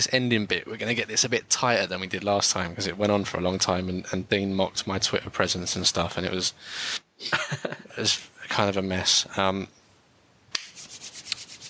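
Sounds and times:
speech: 0.0 - 9.8
hand claps to warm cold hands: 10.6 - 11.4
palms rubbing together: 10.6 - 11.6.

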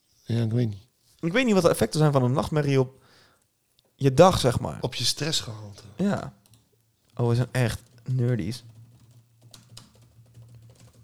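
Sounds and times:
speech: 0.3 - 3.0, 4.0 - 6.4, 7.2 - 8.7
hard typing on a computer keyboard: 6.4 - 11.0.

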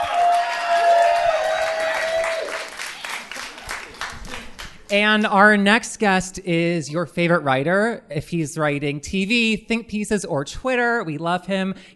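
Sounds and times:
audience cheering: 0.0 - 4.6
audience clapping: 0.0 - 5.3
speech: 4.9 - 11.9.

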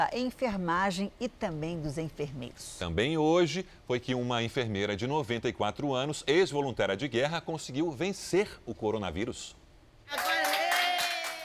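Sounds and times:
speech: 0.0 - 10.3
hospital staff applauding: 10.1 - 11.4
voices cheering: 10.1 - 11.4.

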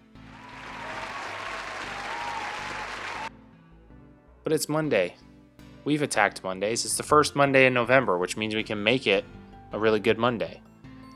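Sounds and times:
crowd clapping and cheering: 0.0 - 3.3
speech: 4.5 - 10.7.

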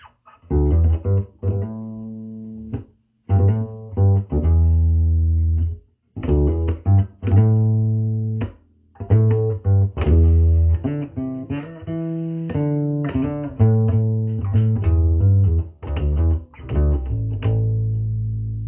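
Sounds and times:
bass guitar through mudbucker neck pickup: 0.0 - 18.6.

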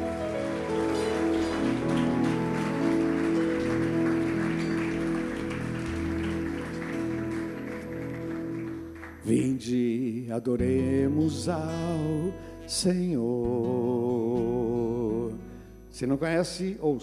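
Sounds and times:
audience applause: 0.0 - 9.7
sustained keyboard or organ chords: 0.0 - 16.2
speech: 9.3 - 14.2, 16.0 - 17.0.

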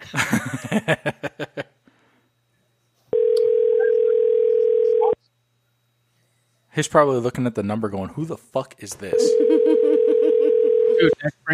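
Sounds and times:
rhythmic laughter: 0.0 - 1.8, 9.3 - 10.7
speech: 0.1 - 1.2, 6.8 - 11.5
telephone ringback tone on outgoing call: 3.2 - 5.2, 9.2 - 11.2.

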